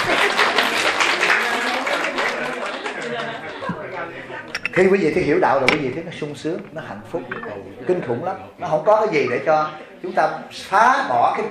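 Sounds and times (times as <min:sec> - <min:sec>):
audience applause during a Buddhist dharma talk: 0:00.0 - 0:03.6
speech: 0:04.8 - 0:11.4.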